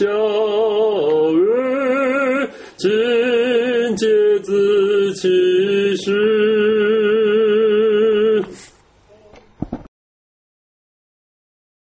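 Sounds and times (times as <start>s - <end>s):
hymn: 0.0s - 8.7s.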